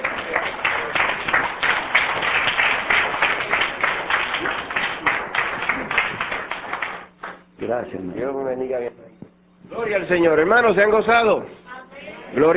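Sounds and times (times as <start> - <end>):
audience applause: 0.0 - 7.4
speech: 7.7 - 11.6, 12.3 - 12.5.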